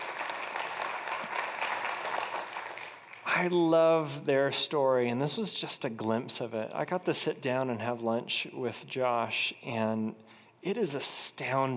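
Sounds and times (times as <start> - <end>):
audience applause: 0.0 - 3.3
speech: 3.4 - 11.7.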